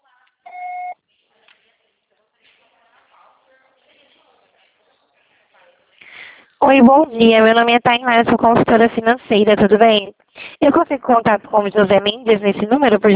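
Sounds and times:
voicemail beep tone: 0:00.5 - 0:01.0
speech: 0:06.7 - 0:13.1.

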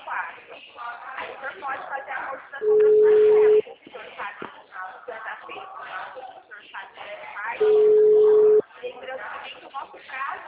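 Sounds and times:
person talking: 0:02.6 - 0:03.6
telephone busy tone from a dropped phone call: 0:02.6 - 0:03.6, 0:07.6 - 0:08.6.

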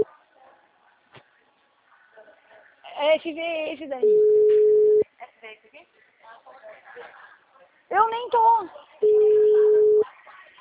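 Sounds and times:
speech: 0:03.0 - 0:04.6, 0:05.2 - 0:07.3, 0:07.9 - 0:09.6
telephone tone while dialing a call: 0:04.0 - 0:05.0, 0:09.0 - 0:10.0.

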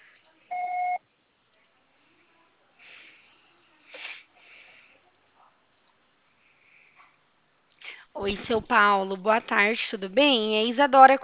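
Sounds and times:
voicemail recording electronic beep: 0:00.5 - 0:01.0
quiet breathing: 0:01.8 - 0:05.5, 0:06.2 - 0:07.2, 0:07.8 - 0:08.2
speech: 0:08.2 - 0:11.2.

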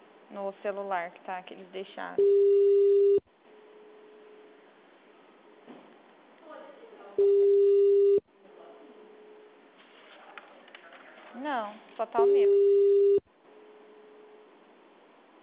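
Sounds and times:
faint hum: 0:00.0 - 0:09.8, 0:12.2 - 0:15.4
speech: 0:00.3 - 0:03.1, 0:12.0 - 0:12.8
phone ringback tone of an unanswered call: 0:02.2 - 0:03.2, 0:07.2 - 0:08.2, 0:12.2 - 0:13.2
voices: 0:08.4 - 0:11.8.

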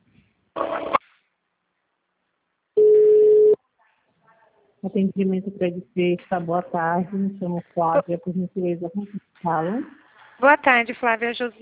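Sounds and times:
telephone tones while call is transferred: 0:02.8 - 0:03.6
speech: 0:04.8 - 0:11.6.

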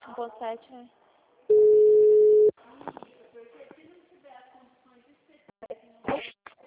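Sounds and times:
speech: 0:00.2 - 0:01.0
telephone busy tone after a dropped call: 0:01.5 - 0:02.5.

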